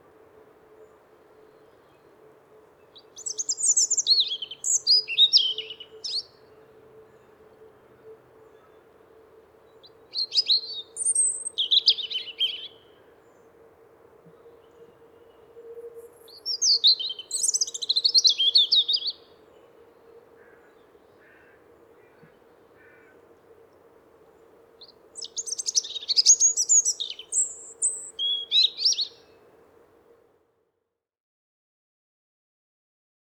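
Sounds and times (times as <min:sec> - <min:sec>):
European robin voice: 0:02.8 - 0:07.4, 0:09.7 - 0:13.6, 0:14.3 - 0:23.1, 0:24.4 - 0:29.4.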